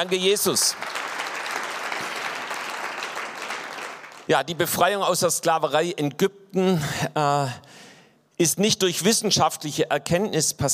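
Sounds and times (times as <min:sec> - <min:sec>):
speech: 0:00.0 - 0:01.0, 0:04.3 - 0:07.7, 0:08.4 - 0:10.7
audience applause: 0:00.0 - 0:04.3.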